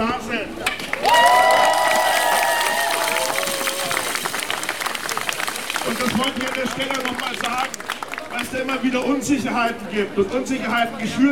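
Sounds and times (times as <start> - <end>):
crowd applause at rally: 0.8 - 9.2
cheers and whistles at rally: 1.0 - 5.3
speech: 8.4 - 11.2.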